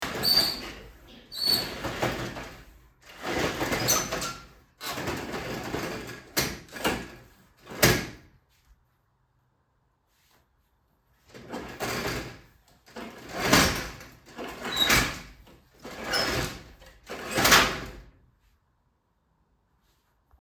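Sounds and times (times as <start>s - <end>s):
window roller shutter opening and closing: 0.0s - 8.2s, 11.4s - 18.1s.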